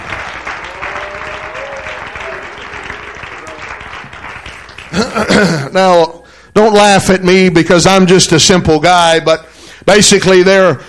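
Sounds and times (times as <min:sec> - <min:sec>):
audience clapping hands: 0:00.0 - 0:05.6
speech: 0:05.0 - 0:10.8.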